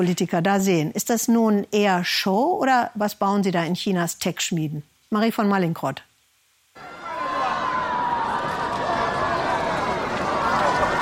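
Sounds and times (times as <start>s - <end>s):
speech: 0.0s - 6.1s
crowd cheering at a robot marathon in Beijing: 6.8s - 11.0s.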